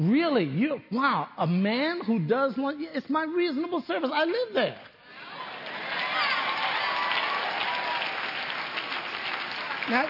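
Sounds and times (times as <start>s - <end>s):
speech: 0.0s - 4.9s, 9.9s - 10.0s
audience applauding: 5.3s - 10.0s.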